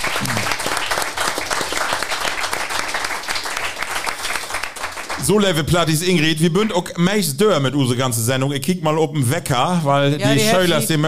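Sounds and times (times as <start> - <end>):
audience applause: 0.0 - 5.7
speech: 5.3 - 11.0.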